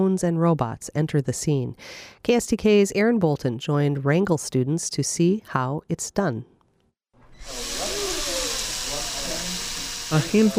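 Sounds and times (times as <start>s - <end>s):
speech: 0.0s - 6.5s, 10.1s - 10.5s
power drill or electric screwdriver whirring: 7.4s - 10.5s.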